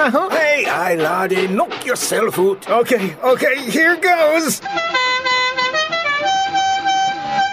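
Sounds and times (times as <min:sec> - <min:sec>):
speech: 0:00.0 - 0:05.0
novelty car horn melody: 0:04.6 - 0:07.5.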